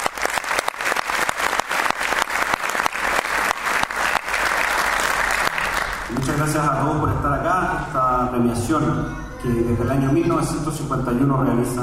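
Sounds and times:
audience applause: 0.0s - 6.3s
speech: 6.4s - 11.8s.

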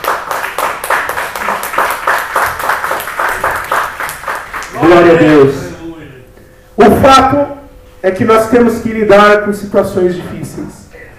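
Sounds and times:
audience applause: 0.0s - 5.0s
speech: 4.9s - 5.6s, 6.9s - 10.8s.

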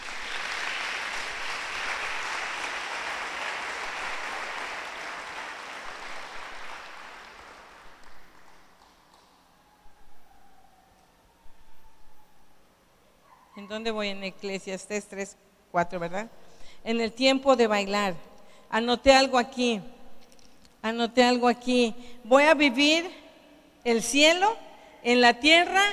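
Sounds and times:
audience applause: 0.0s - 9.4s
speech: 13.7s - 20.0s, 20.8s - 23.2s, 23.8s - 25.9s.

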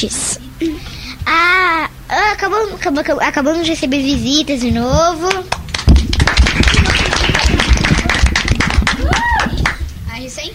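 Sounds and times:
speech: 0.0s - 5.6s
hands clapping: 5.2s - 9.8s.

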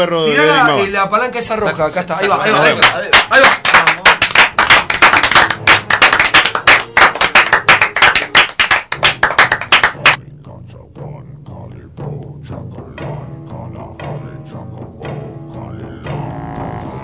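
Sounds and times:
speech: 0.0s - 4.1s
applause from an applause sound-effect machine: 2.6s - 10.2s.

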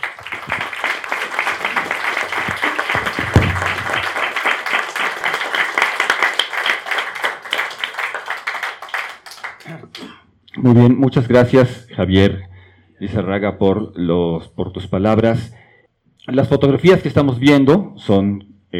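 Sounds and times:
applause for the deceased: 0.0s - 10.0s
speech: 10.6s - 15.6s, 16.3s - 18.5s.

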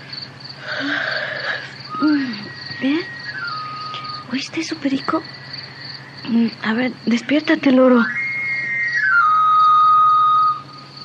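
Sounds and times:
knife sharpener's street whistle: 1.9s - 4.7s, 7.9s - 11.0s
speech: 4.6s - 5.5s, 6.3s - 8.2s.

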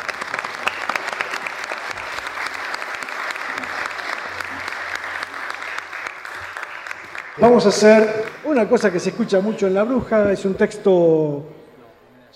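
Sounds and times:
audience applause: 0.0s - 9.7s
speech: 7.4s - 11.6s.

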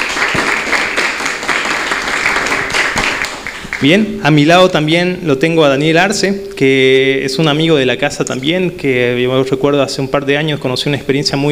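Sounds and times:
audience applause welcoming a guest: 0.0s - 4.0s
speech: 3.8s - 11.5s.

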